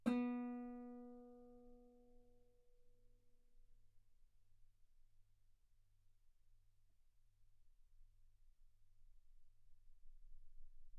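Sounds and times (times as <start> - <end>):
guitar B3 note on B string played fortissimo: 0.0 - 1.7.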